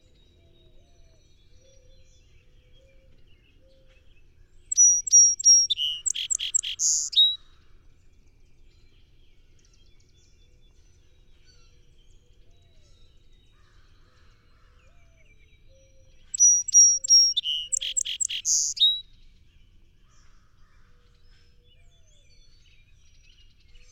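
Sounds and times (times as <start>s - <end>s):
song sparrow singing: 4.7s - 7.4s, 16.3s - 19.0s.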